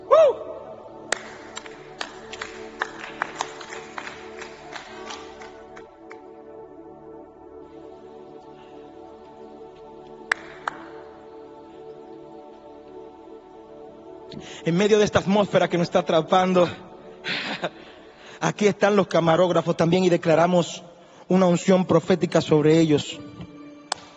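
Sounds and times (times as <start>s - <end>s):
scattered audience applause: 1.1s - 6.2s
speech: 14.6s - 16.9s, 18.4s - 23.3s.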